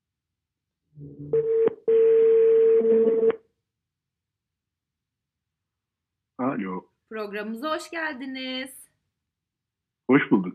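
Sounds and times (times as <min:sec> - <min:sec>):
speech: 0:01.0 - 0:01.6, 0:06.7 - 0:08.8
long steady telephone tone: 0:01.3 - 0:03.4.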